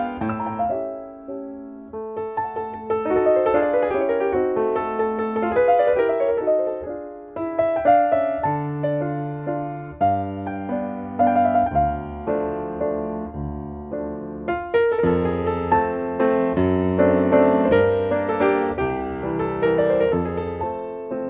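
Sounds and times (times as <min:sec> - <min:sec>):
piano piece: 0:00.0 - 0:21.2.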